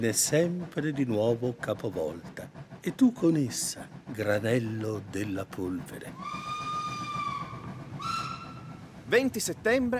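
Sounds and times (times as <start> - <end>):
speech: 0.0 - 6.5, 9.1 - 9.9
train speeding through the Gotthard tunnel rumbling: 0.0 - 9.9
high whistling tone of train in the Gotthard tunnel: 6.2 - 8.8.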